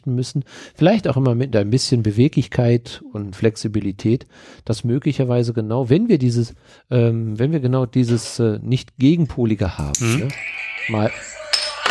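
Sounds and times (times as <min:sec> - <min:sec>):
speech: 0:00.0 - 0:11.3
music from a novelty bottle opener: 0:10.0 - 0:11.9.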